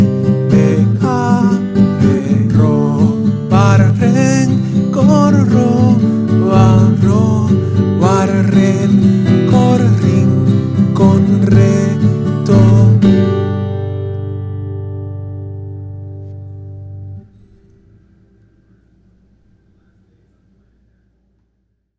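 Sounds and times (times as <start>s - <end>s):
person singing: 0.0s - 13.5s
guitar: 0.0s - 21.5s.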